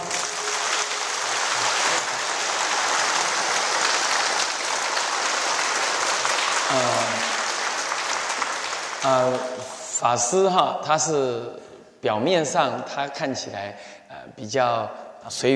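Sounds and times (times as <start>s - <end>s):
audience applause: 0.0s - 9.9s
speech: 9.0s - 15.5s.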